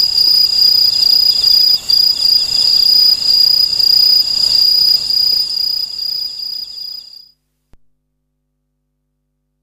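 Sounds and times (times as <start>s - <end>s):
aomatsumushi insect chirping: 0.0s - 7.3s.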